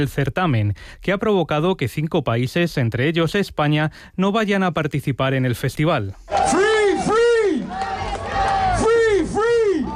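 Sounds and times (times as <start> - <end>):
speech: 0.0 - 6.6
crowd at a Vienna concert chanting against Israel's Eurovision participation: 6.3 - 9.9.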